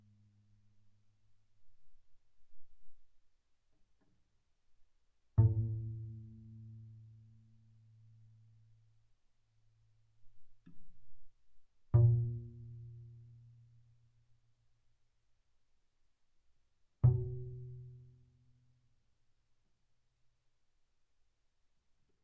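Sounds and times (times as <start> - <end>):
double bass pizzicato on the D string fortissimo: 5.4 - 7.4, 11.9 - 13.8, 17.0 - 18.2.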